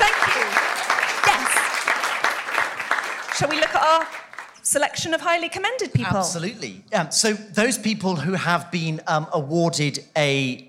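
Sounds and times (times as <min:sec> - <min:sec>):
audience clapping: 0:00.0 - 0:04.9
speech: 0:03.4 - 0:10.6.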